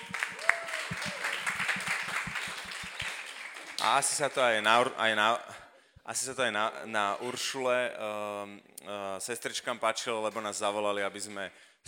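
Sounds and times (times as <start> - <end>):
brief high cheers and whistles: 0.0 - 3.3
audience applause: 0.0 - 4.4
speech: 3.8 - 5.5, 6.1 - 11.8.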